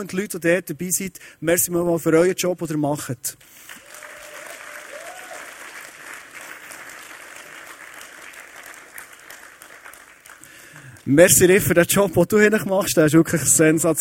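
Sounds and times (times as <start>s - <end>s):
speech: 0.0s - 3.8s, 11.1s - 13.9s
audience applause: 3.6s - 11.2s.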